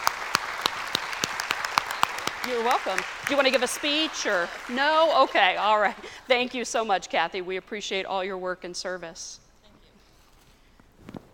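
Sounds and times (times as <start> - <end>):
audience applause: 0.0 - 6.1
speech: 2.4 - 9.4.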